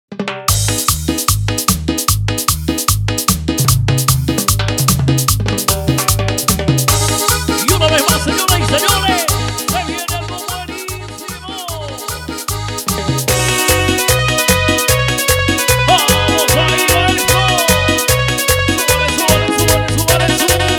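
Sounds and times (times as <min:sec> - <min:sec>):
upbeat Chicha instrumental at 150 BPM: 0:00.1 - 0:20.7.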